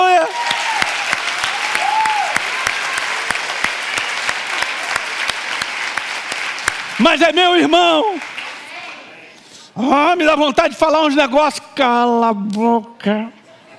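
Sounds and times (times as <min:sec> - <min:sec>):
audience applauding: 0:00.0 - 0:09.1
rising whoops and cheers: 0:00.1 - 0:03.3
speech: 0:07.0 - 0:08.2, 0:09.8 - 0:13.4.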